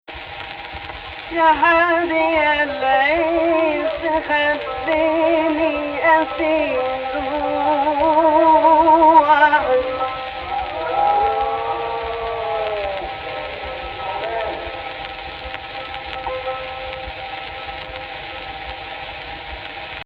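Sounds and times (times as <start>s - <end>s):
voice singing AHH in Egypt Rast: 1.3s - 17.2s.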